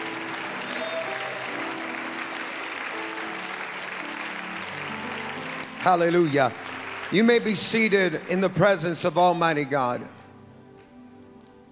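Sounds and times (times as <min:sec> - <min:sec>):
audience clapping hands: 0:00.0 - 0:08.9
speech: 0:05.8 - 0:10.2.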